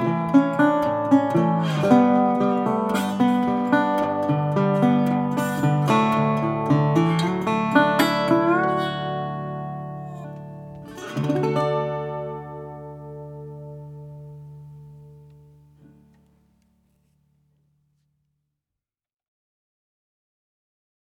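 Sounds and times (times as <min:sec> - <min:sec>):
dobro steel guitar with nickel strings: 0:00.0 - 0:16.4.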